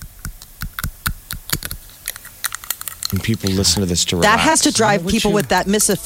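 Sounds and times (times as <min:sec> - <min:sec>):
person chewing on a pen: 0:00.0 - 0:04.4
speech: 0:03.1 - 0:06.0.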